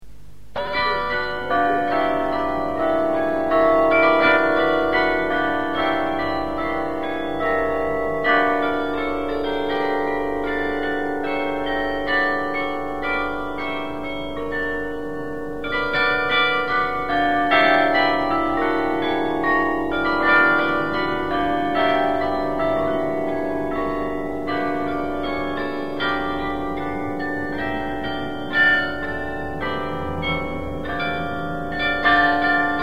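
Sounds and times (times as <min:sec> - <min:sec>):
carillon bells: 0:00.6 - 0:32.8.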